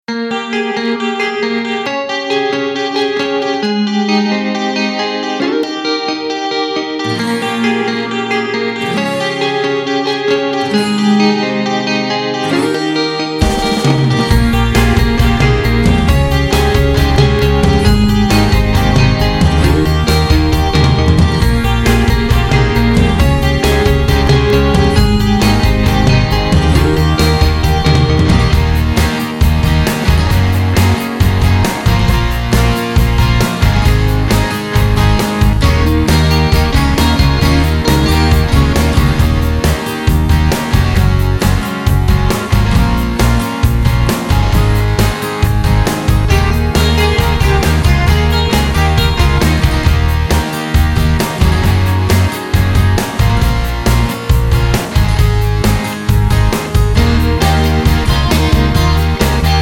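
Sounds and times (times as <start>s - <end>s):
instrumental music: 0.1s - 59.6s.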